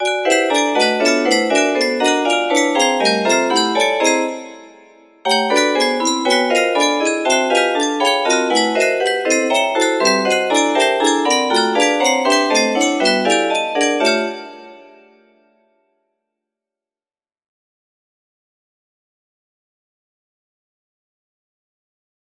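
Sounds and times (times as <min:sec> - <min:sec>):
melody: 0:00.0 - 0:15.4.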